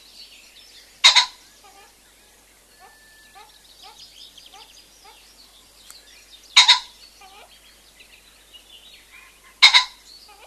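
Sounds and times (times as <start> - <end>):
common pheasant crowing: 1.0 - 5.8, 6.5 - 7.6, 9.0 - 10.4.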